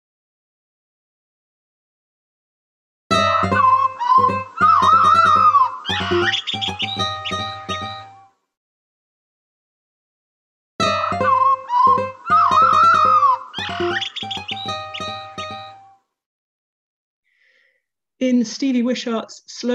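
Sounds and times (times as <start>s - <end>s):
blackbird singing: 3.5s - 8.1s, 11.0s - 15.7s
speech: 18.2s - 19.7s.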